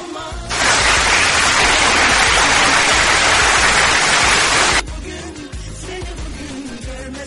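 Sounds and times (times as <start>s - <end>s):
audience applause: 0.5s - 4.8s.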